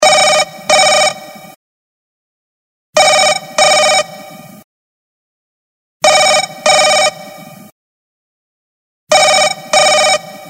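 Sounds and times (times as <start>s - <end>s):
BlackBerry Curve 9320 ringtone: 0.0s - 1.3s, 3.0s - 4.2s, 6.0s - 7.3s, 9.1s - 10.4s.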